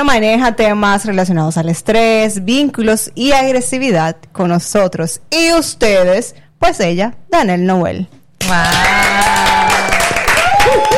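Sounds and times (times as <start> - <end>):
speech: 0.0 - 9.2
audience clapping: 8.4 - 10.9
people whooping: 8.4 - 10.9.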